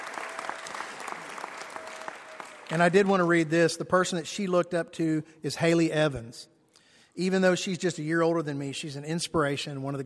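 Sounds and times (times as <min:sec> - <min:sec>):
audience applause: 0:00.0 - 0:03.5
speech: 0:02.7 - 0:06.5, 0:07.2 - 0:10.0.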